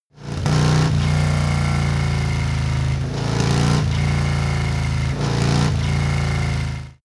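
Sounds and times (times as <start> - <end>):
Harley motorcycle engine revving: 0.2 - 7.0.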